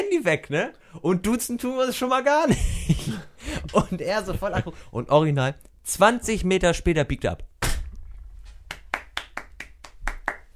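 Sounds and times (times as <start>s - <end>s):
speech: 0.0s - 7.5s
laughter: 2.5s - 4.7s
applause: 8.7s - 10.5s.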